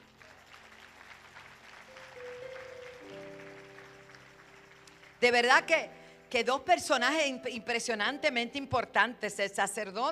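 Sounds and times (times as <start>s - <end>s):
audience applause: 0.0s - 5.2s
speech: 5.2s - 10.1s.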